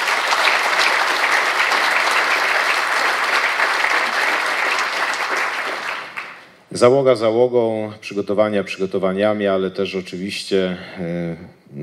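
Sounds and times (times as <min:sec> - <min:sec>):
audience applause: 0:00.0 - 0:06.6
speech: 0:06.8 - 0:11.8.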